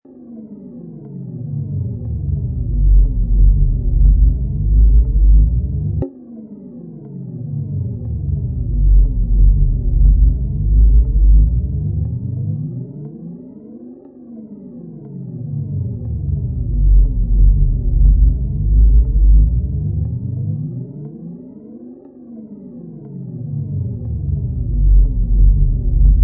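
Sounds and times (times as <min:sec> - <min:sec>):
deep creepy evil bass sound: 0:01.0 - 0:06.1, 0:07.2 - 0:13.2, 0:15.0 - 0:21.2, 0:23.0 - 0:26.2.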